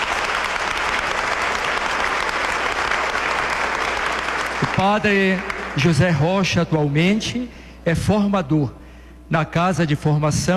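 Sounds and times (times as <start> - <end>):
audience applause: 0.0 - 6.2
speech: 4.8 - 10.5.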